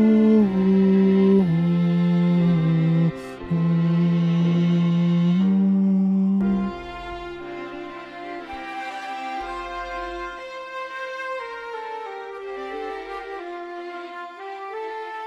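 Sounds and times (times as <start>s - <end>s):
soprano voice: 0.0s - 8.0s.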